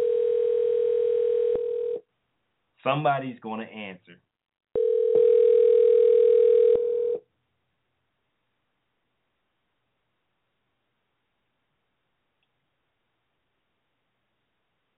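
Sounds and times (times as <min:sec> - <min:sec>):
ringback tones from an outgoing phone call: 0:00.0 - 0:02.0, 0:04.8 - 0:07.2
person talking: 0:02.8 - 0:04.2.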